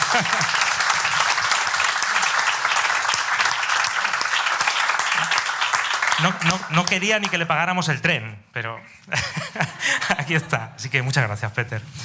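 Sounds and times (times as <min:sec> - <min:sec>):
laughter: 0:00.0 - 0:01.3, 0:08.9 - 0:10.5
audience applause: 0:00.0 - 0:07.6
speech: 0:00.1 - 0:00.7, 0:06.2 - 0:12.0.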